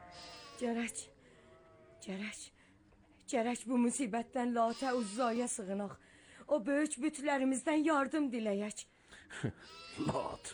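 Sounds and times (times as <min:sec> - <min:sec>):
lambs bleating in a flock: 0:00.0 - 0:02.0, 0:04.6 - 0:05.8, 0:09.6 - 0:10.5
speech: 0:00.1 - 0:01.2, 0:02.0 - 0:02.6, 0:03.3 - 0:10.5.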